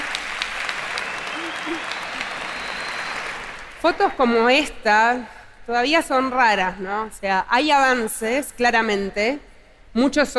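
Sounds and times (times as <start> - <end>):
audience applause: 0.0 - 3.8
speech: 1.7 - 2.0, 3.8 - 10.3.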